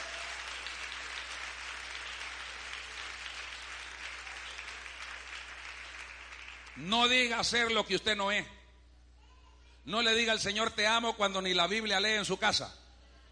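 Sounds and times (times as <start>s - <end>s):
audience applauding: 0.0s - 6.9s
speech: 6.8s - 8.6s, 9.8s - 12.8s.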